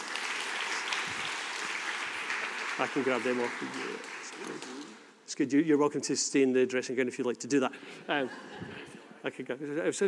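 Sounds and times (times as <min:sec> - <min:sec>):
church congregation applauding: 0:00.0 - 0:05.1
speech: 0:02.8 - 0:10.0.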